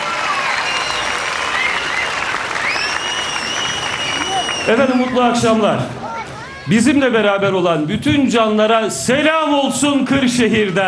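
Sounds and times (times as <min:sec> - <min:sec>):
crowd applause in a town square in Kırşehir: 0:00.0 - 0:06.5
speech: 0:04.7 - 0:06.0, 0:06.7 - 0:10.8.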